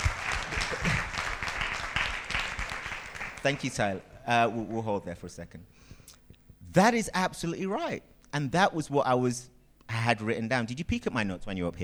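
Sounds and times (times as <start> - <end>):
crowd applauding: 0.0 - 3.8
speech: 3.4 - 5.8, 6.8 - 11.8.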